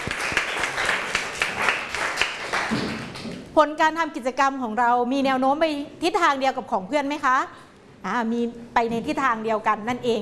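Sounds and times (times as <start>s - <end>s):
class applauding: 0.0s - 3.5s
speech: 3.6s - 10.2s.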